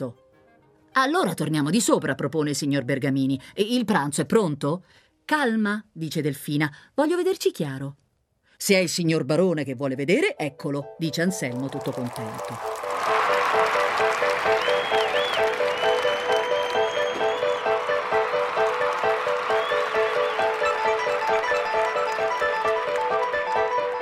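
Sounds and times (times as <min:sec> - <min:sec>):
speech: 0:00.0 - 0:00.2, 0:01.0 - 0:08.0, 0:08.6 - 0:12.8
large crowd applause: 0:11.5 - 0:24.0
whistle-like sounds: 0:13.3 - 0:22.9.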